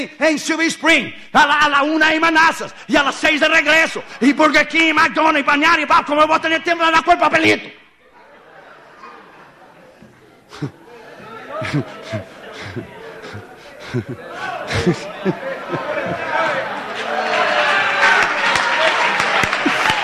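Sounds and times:
speech: 0.0s - 7.8s, 10.5s - 10.8s, 11.6s - 13.0s, 13.9s - 16.2s
laughter: 8.0s - 20.0s
audience applause: 16.4s - 20.0s.

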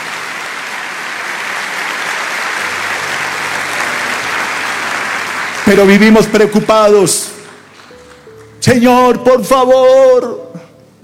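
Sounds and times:
crowd applause: 0.0s - 8.6s
speech: 5.7s - 7.2s, 8.6s - 10.5s.

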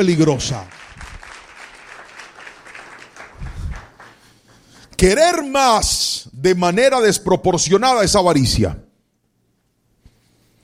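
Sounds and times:
speech: 0.0s - 0.8s, 5.0s - 8.8s
audience applause: 0.4s - 4.7s.

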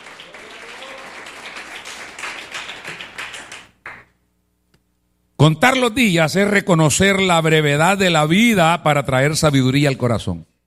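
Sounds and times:
audience applause: 0.0s - 4.0s
speech: 5.4s - 10.5s.

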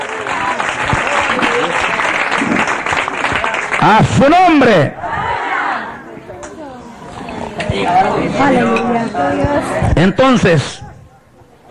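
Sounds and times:
audience clapping: 0.0s - 4.2s
speech: 3.8s - 5.0s, 7.9s - 10.8s.

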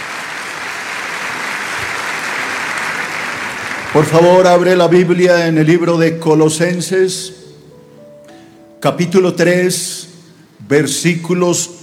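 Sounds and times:
audience applause: 0.0s - 4.8s
speech: 4.0s - 7.4s, 8.8s - 10.1s, 10.7s - 11.8s.

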